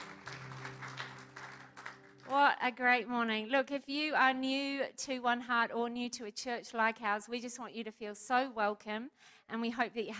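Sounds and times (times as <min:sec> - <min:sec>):
group applauding: 0:00.0 - 0:02.4
speech: 0:02.3 - 0:10.1.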